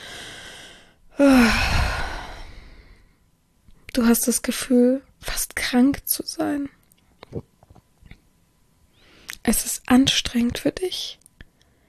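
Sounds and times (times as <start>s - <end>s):
heavy breathing: 0.0s - 3.1s
speech: 4.0s - 7.5s, 9.5s - 11.2s.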